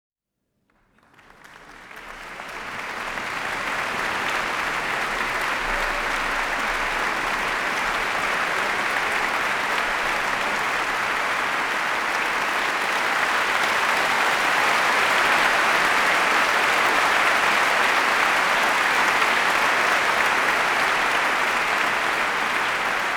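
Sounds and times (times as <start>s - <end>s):
applause: 0.6s - 23.1s.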